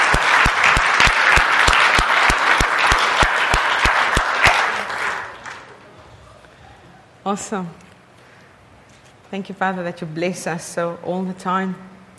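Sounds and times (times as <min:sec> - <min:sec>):
audience applause: 0:00.0 - 0:05.9
speech: 0:07.3 - 0:07.8, 0:09.3 - 0:11.9.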